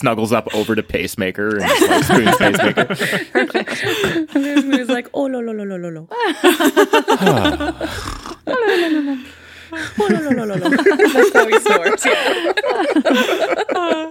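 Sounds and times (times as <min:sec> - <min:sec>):
speech: 0:00.0 - 0:14.0
laughter: 0:01.6 - 0:05.1, 0:06.1 - 0:14.0
voice imitating snoring: 0:07.2 - 0:08.6.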